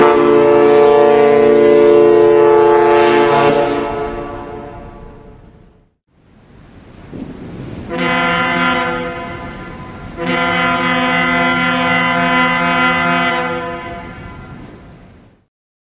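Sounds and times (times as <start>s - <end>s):
large warship cruiser whistle: 0.0s - 5.5s, 7.9s - 14.7s.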